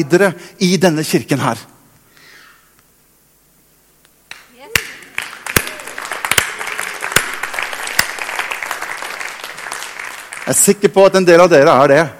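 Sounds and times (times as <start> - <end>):
speech: 0.0 - 1.7, 10.5 - 12.1
crowd applauding: 4.3 - 11.0.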